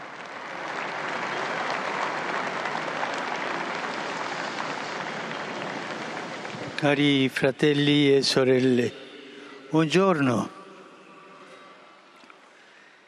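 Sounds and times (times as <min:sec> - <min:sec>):
pilgrims applauding in Piazza San Pietro: 0:00.0 - 0:08.8
speech: 0:06.8 - 0:09.0, 0:09.7 - 0:10.6.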